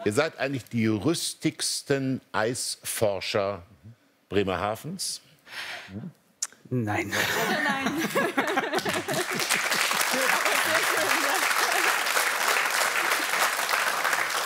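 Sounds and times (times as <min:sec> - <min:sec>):
speech: 0:00.0 - 0:03.7, 0:04.3 - 0:11.2
laughter: 0:07.0 - 0:12.1
audience applause: 0:08.1 - 0:14.4.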